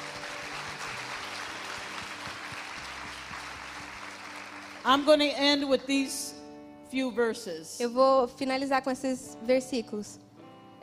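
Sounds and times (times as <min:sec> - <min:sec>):
audience applause: 0:00.0 - 0:04.9
speech: 0:04.8 - 0:10.2.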